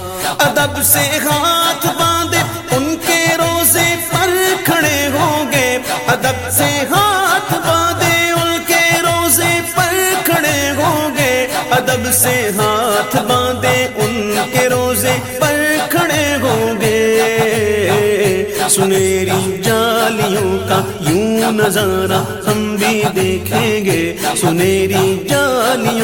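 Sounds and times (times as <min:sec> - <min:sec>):
Islamic ringtone: 0:00.1 - 0:26.0.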